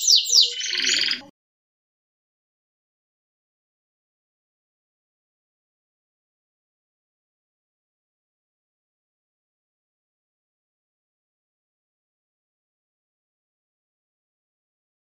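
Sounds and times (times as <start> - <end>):
Atlantic canary singing: 0.0 - 1.3.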